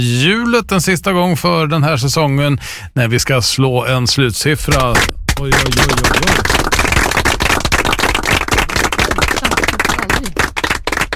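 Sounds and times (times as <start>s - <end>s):
speech: 0.0s - 6.6s
applause sound effect: 4.7s - 11.1s.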